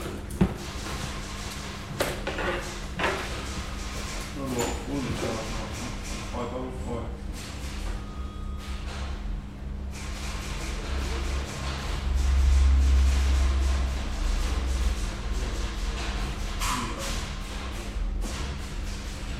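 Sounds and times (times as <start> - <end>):
police station ambience: 0.0 - 19.3.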